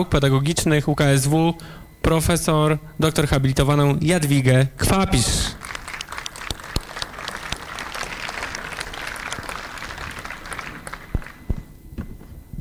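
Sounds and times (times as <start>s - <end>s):
speech: 0.0s - 5.6s
audience applause: 5.4s - 11.6s.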